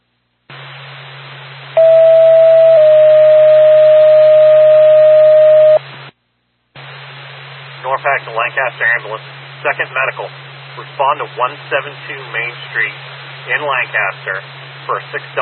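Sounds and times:
radio hiss and hum: 0.5 - 1.8, 4.5 - 6.2, 6.8 - 15.4
radio dispatch alert tones: 1.8 - 5.8
speech: 8.3 - 15.4.

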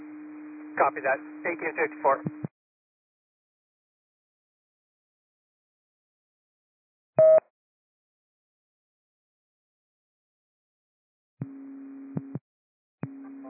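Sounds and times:
dispatch cancellation tones: 0.5 - 2.3
speech: 0.8 - 2.5.

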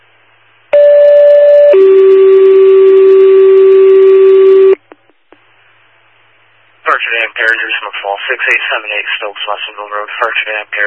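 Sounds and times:
old-fashioned alarm tone: 0.8 - 4.8
speech: 8.3 - 10.8.

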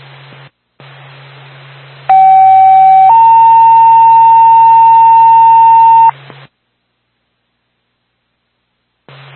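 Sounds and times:
quiet radio hiss: 0.0 - 6.5, 9.1 - 9.3
ambulance dispatch two-tone alert page: 2.1 - 6.1.

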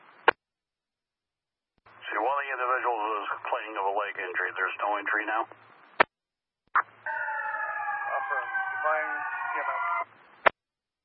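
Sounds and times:
speech: 2.2 - 5.8
fire truck siren: 7.0 - 10.1.

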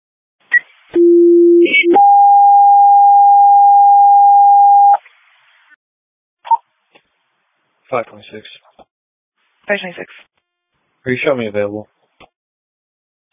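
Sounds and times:
radio dispatch alarm tone: 1.0 - 5.0
speech: 7.9 - 8.7, 9.7 - 10.4, 11.0 - 12.0.

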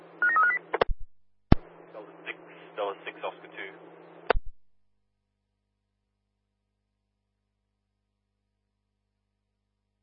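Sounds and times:
telephone touch-tone dialing beeps: 0.2 - 0.6
sharp clicks and pops: 0.7 - 1.7
faint low hum: 1.6 - 4.6.

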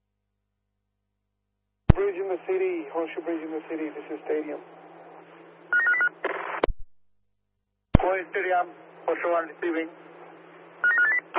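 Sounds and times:
speech: 2.2 - 4.8, 8.2 - 10.1
telephone ringing: 5.7 - 6.1, 10.8 - 11.3.

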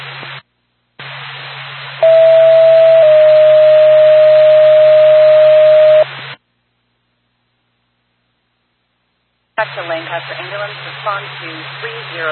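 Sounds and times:
steady radio hiss: 0.0 - 0.4, 1.0 - 6.4, 9.6 - 12.3
dispatch radio alert tone: 2.0 - 6.0
speech: 10.1 - 12.3.

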